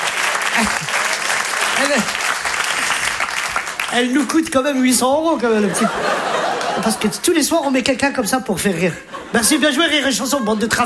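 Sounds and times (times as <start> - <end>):
audience applause: 0.0 - 4.4, 6.2 - 6.8
laughter: 0.4 - 2.2, 5.4 - 10.8
speech: 0.6 - 0.9, 1.8 - 2.2, 3.9 - 10.8.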